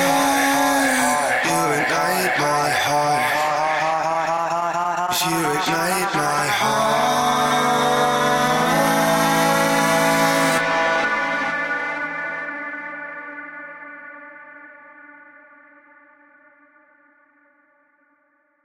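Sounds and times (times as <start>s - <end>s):
EDM a cappella vocals in B minor at 128 BPM: 0.0s - 14.2s.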